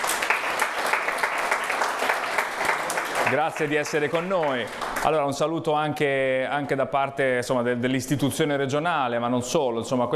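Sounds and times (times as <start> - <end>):
audience applause: 0.0 - 5.2
speech: 3.3 - 10.1.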